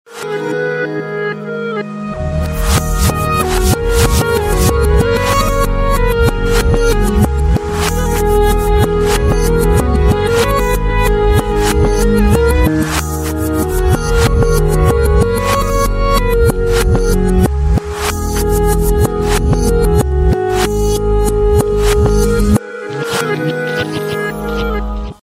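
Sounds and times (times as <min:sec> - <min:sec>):
romantic Samsung ringtone: 0:00.2 - 0:25.2.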